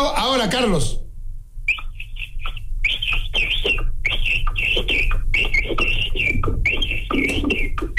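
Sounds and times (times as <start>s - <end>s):
speech: 0.3s - 1.0s
person whistling an imitation of a capybara call: 1.7s - 7.9s.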